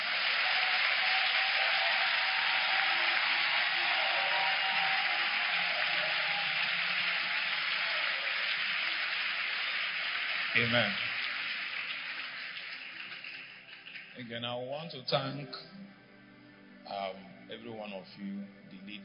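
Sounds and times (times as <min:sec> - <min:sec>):
audience clapping: 0:00.0 - 0:14.5
speech: 0:10.6 - 0:11.1, 0:14.2 - 0:16.0, 0:16.9 - 0:19.0.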